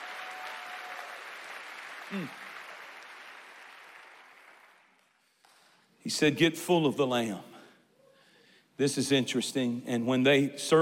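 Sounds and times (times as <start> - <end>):
audience clapping: 0.0 - 5.8
speech: 2.1 - 2.5, 6.0 - 7.5, 8.8 - 10.8.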